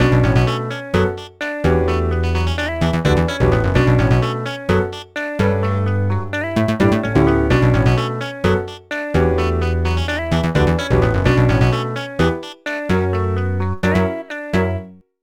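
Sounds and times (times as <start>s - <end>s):
hip hop music: 0.0s - 14.8s.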